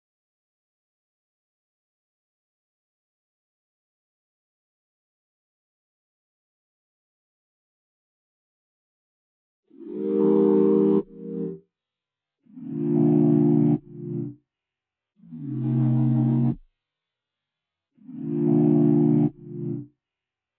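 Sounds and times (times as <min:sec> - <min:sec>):
sine chords in C minor R and B melody loop: 0:10.0 - 0:11.6, 0:12.6 - 0:14.4, 0:15.4 - 0:16.6, 0:18.1 - 0:19.9.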